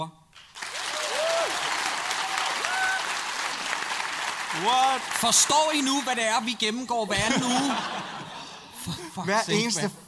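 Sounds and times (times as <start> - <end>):
speech: 0.0 - 0.2, 4.6 - 8.1, 9.2 - 10.0
audience clapping: 0.3 - 7.6
laughter: 6.7 - 9.8.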